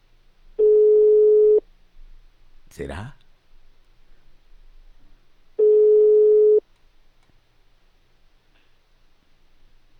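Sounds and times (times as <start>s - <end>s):
telephone dial tone during dialing: 0.6s - 1.6s, 5.6s - 6.6s
speech: 2.8s - 3.2s.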